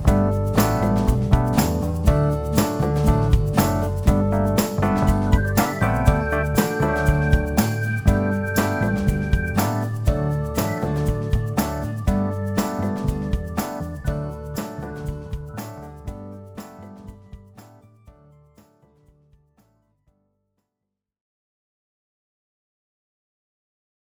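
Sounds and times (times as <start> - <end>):
instrumental backing track without vocals: 0.0 - 18.5.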